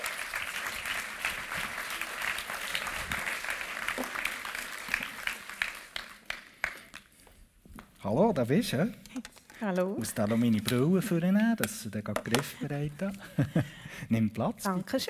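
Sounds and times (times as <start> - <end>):
crowd applause: 0.0 - 6.9
speech: 8.1 - 9.0, 9.6 - 15.0
laughter: 12.3 - 14.0.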